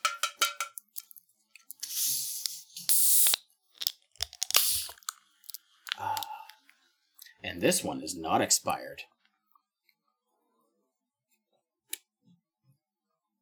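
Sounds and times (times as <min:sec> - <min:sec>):
bottle clicks and clinks: 0:00.0 - 0:01.1
bottles of old-fashioned draft-style root beer opening with fizzing hisses: 0:01.8 - 0:05.1
speech: 0:07.6 - 0:09.2.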